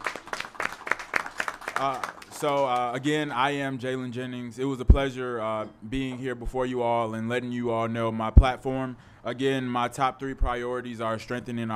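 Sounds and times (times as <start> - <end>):
audience applause: 0.0 - 2.9
speech: 1.8 - 11.7.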